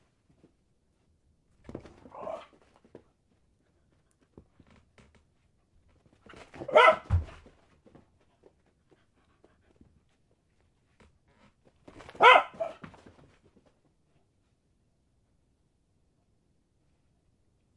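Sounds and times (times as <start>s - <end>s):
dog barking while playing fetch: 6.6s - 7.2s, 12.2s - 12.8s.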